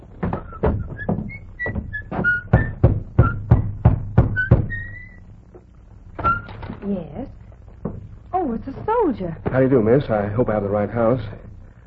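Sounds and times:
knocking on a wooden cottage door: 0.2s - 5.1s, 7.8s - 10.2s
faint high whistling chirps: 0.3s - 3.7s, 4.3s - 5.3s
speech: 9.1s - 11.4s.

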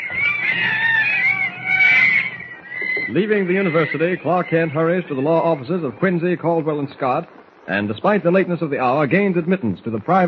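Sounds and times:
monkeys chattering: 0.0s - 6.3s
speech: 3.1s - 10.2s.

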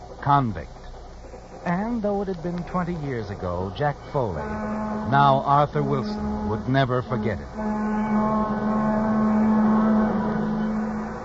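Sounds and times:
speech: 0.3s - 0.8s, 1.6s - 8.8s
train whistle wailing: 3.2s - 11.2s.

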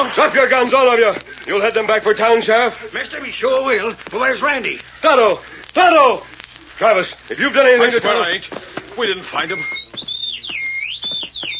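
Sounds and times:
speech: 0.0s - 10.0s
shrill whistle blowing: 9.3s - 11.5s.

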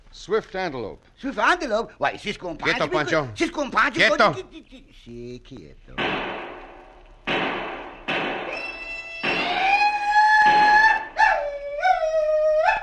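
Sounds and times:
speech: 0.2s - 6.4s
shrill war whoops: 8.5s - 12.8s.

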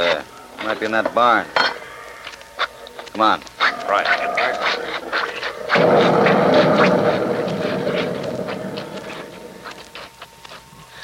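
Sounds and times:
speech: 0.1s - 1.6s, 3.2s - 6.2s
excited pigs in a barn: 1.8s - 9.8s.

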